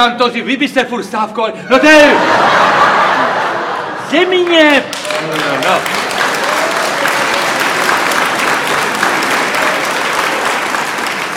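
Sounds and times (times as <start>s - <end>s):
speech: 0.0s - 3.1s, 4.1s - 6.0s
laughter: 1.7s - 11.3s
audience applause: 4.2s - 11.3s.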